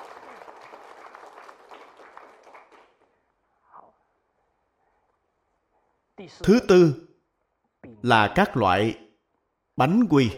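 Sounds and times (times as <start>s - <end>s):
audience applause: 0.0s - 3.2s
speech: 6.2s - 7.0s, 8.0s - 9.0s, 9.8s - 10.3s.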